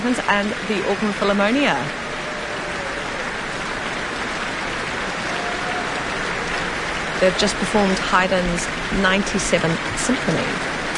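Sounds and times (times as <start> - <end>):
speech: 0.0 - 2.1, 7.2 - 10.8
cheers and applause from the Auckland Town Hall: 1.5 - 7.6.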